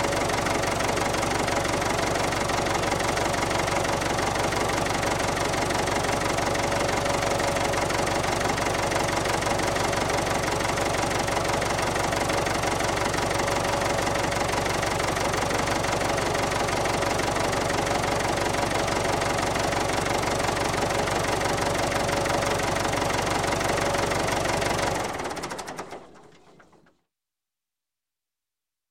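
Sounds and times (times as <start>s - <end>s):
industrial diesel tractor engine starting and idling and stopping: 0.0s - 26.8s.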